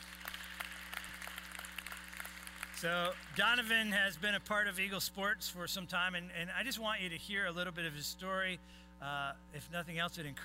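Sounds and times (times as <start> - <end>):
audience applause: 0.0 - 3.6
steady low electrical hum: 0.0 - 10.4
speech: 2.8 - 10.4.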